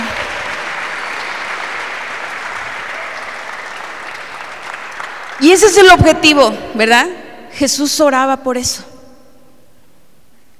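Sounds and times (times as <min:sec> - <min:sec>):
crowd applauding: 0:00.0 - 0:05.9
speech: 0:05.4 - 0:08.9.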